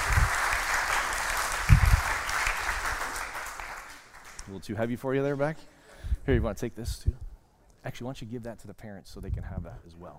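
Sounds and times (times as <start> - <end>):
round of applause: 0.0 - 4.5
speech: 4.5 - 10.1.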